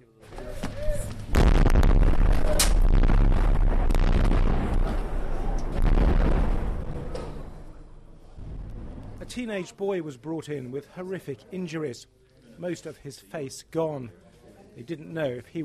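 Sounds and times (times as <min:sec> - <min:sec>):
bombs exploding in Homs: 0:01.2 - 0:09.3
speech: 0:09.4 - 0:14.2, 0:14.8 - 0:15.6.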